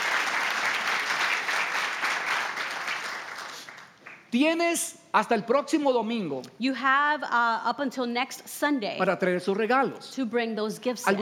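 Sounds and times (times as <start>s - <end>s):
church congregation applauding at a Sunday service: 0.0s - 4.4s
speech: 4.3s - 11.1s.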